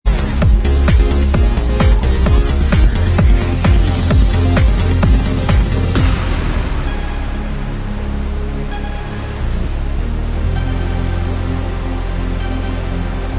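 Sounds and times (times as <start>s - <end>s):
extended dance remix instrumental music: 0.0s - 13.3s.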